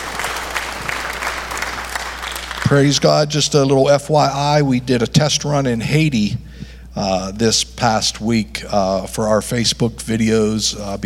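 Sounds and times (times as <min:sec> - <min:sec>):
church congregation applauding to welcome online worshippers: 0:00.0 - 0:03.7
speech: 0:02.7 - 0:11.0.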